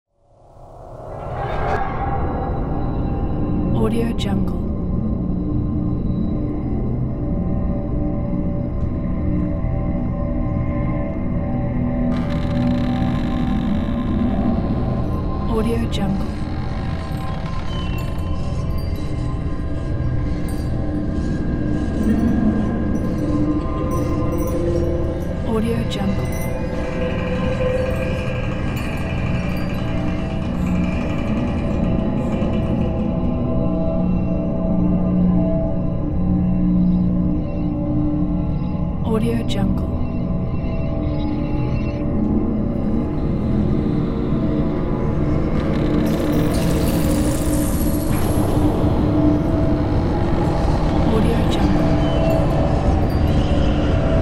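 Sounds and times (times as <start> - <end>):
horror ambience: 0.1 - 54.2.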